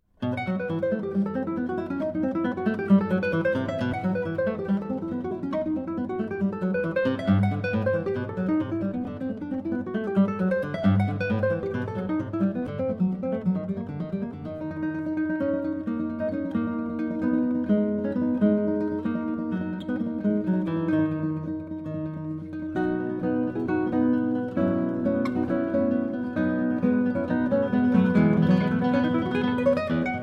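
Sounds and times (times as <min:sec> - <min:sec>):
prelude in B major: 0:00.2 - 0:30.2.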